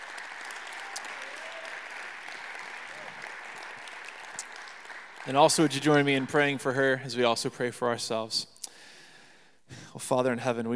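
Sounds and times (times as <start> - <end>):
audience clapping at a Christian disability ministry gathering: 0.0 - 7.2
speech: 5.2 - 8.5, 10.0 - 10.7.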